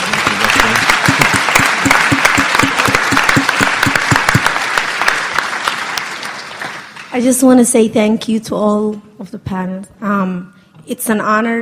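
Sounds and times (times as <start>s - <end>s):
audience applause: 0.0s - 7.1s
speech: 7.2s - 11.6s.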